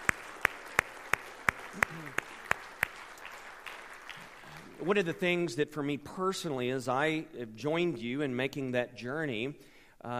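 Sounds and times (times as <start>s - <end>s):
audience applause: 0.0s - 5.0s
speech: 4.8s - 10.1s.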